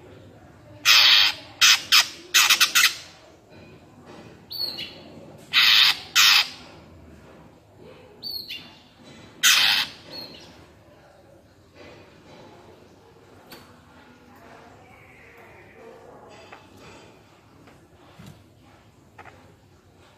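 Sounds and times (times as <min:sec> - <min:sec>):
greater green leafbird rasping notes and high whistles: 0:00.8 - 0:03.1, 0:04.5 - 0:06.7, 0:09.4 - 0:10.5.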